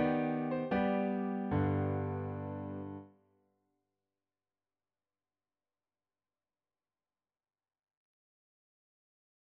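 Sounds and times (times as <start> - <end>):
piano: 0.0 - 3.1.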